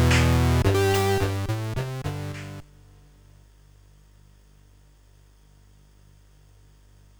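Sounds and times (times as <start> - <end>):
tune on CSG8580R5 chip: 0.0 - 2.6.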